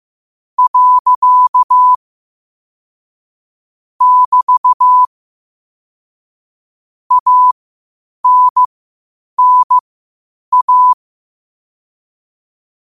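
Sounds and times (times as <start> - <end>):
morse code at 5 wpm: 0.6 - 2.0, 4.0 - 5.1, 7.1 - 7.6, 8.2 - 8.7, 9.4 - 9.8, 10.5 - 11.0.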